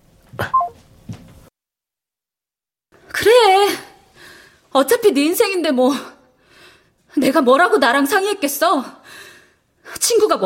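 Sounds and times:
phone number being dialed: 0.5s - 0.8s
speech: 4.8s - 6.2s, 7.2s - 9.3s, 10.0s - 10.4s.

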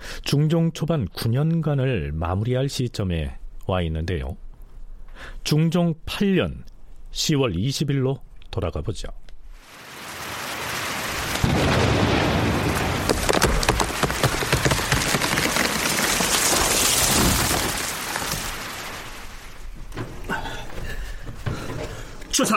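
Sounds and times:
speech: 0.3s - 4.5s, 5.2s - 9.2s, 22.4s - 22.5s
steady rain: 9.5s - 22.5s
lightning strike thunder crack: 10.6s - 20.0s.

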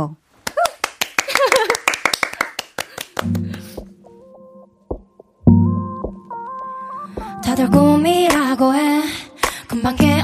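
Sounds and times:
speech: 0.0s - 0.2s, 7.6s - 10.2s
people clapping: 0.4s - 3.9s
laughter: 1.3s - 1.9s.

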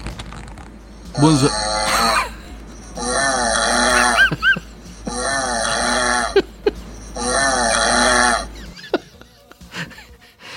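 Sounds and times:
recording of husband's loud metallic snoring: 1.1s - 8.7s
speech: 1.2s - 1.8s
laughter: 3.9s - 5.1s, 6.3s - 7.2s, 8.6s - 10.4s.

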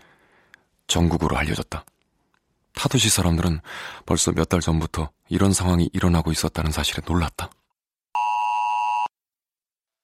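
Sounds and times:
speech: 0.9s - 1.9s, 2.8s - 7.6s
disaster safety text message alert tone on a phone: 8.2s - 9.1s.

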